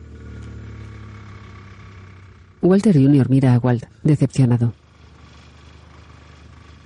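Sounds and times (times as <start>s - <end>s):
car engine pulling away: 0.0s - 3.3s, 4.8s - 6.8s
speech: 2.6s - 4.8s.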